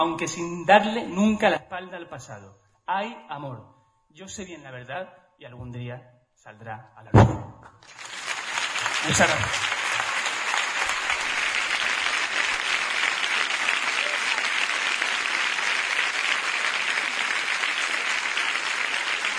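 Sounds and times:
speech: 0.0s - 8.0s, 9.0s - 9.7s
audience ovation applause: 7.8s - 19.3s.

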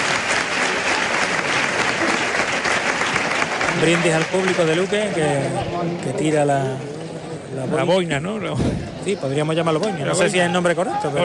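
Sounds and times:
audience applause and ovation at bullfight: 0.0s - 5.8s
speech: 3.8s - 11.2s.

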